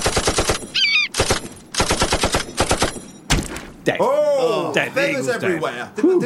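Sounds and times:
rapid bursts of gunfire fired at an eagle: 0:00.0 - 0:03.7
speech: 0:03.9 - 0:06.2.

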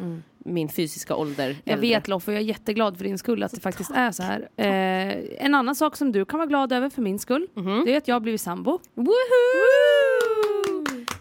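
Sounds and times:
speech: 0:00.2 - 0:10.0
person cheering: 0:09.1 - 0:11.2
hand claps: 0:10.1 - 0:11.2.

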